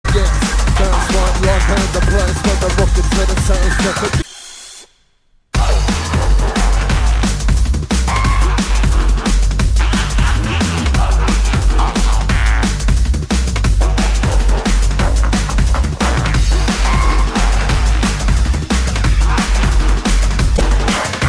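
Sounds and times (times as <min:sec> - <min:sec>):
UK drum and bass jungle music: 0:00.0 - 0:04.3, 0:05.6 - 0:21.2.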